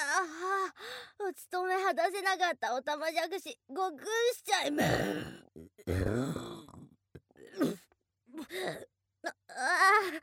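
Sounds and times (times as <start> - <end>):
speech: 1.3 - 7.8, 8.4 - 10.2
loud low rasping burp: 4.8 - 7.0.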